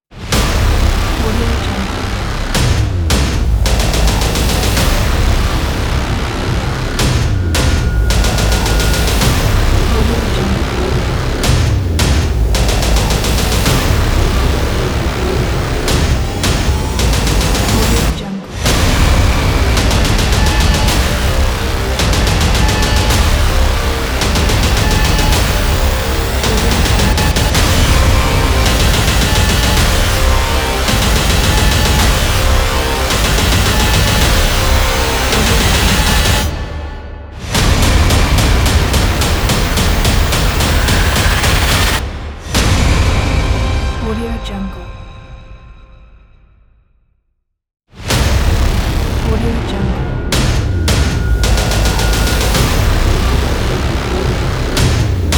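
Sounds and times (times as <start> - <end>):
intense trailer music: 0.0 - 47.3, 47.9 - 55.3.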